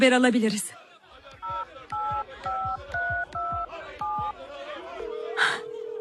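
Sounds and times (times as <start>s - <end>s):
phone keypad dual-tone beeps: 1.4s - 4.4s
line tone: 4.8s - 5.9s.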